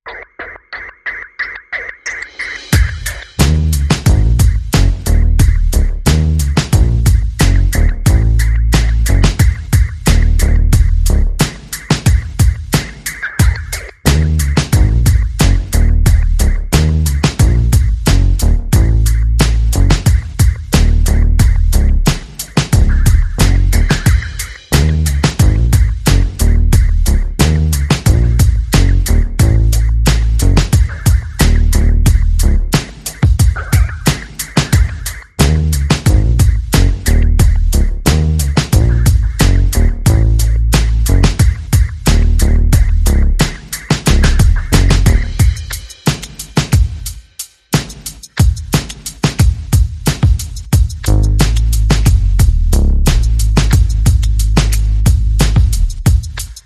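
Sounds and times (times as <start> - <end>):
percussion: 0.0 - 56.6
bass: 3.4 - 11.5, 14.0 - 32.8, 35.4 - 45.5, 51.0 - 56.3.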